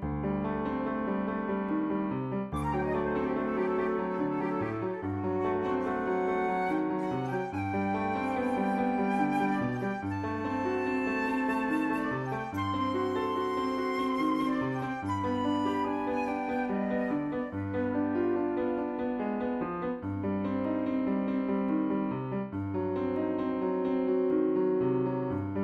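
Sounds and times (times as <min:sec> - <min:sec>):
piano: 0:00.0 - 0:25.6
flute: 0:02.5 - 0:19.0.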